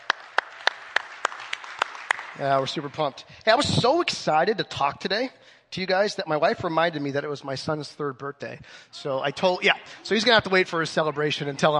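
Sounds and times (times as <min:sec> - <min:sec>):
audience applause: 0:00.0 - 0:03.1
sharp evenly spaced claps: 0:00.0 - 0:03.2
speech: 0:02.4 - 0:11.7.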